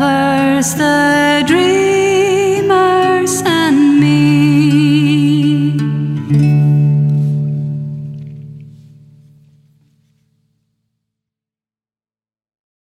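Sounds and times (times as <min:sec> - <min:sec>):
person singing: 0:00.0 - 0:07.4.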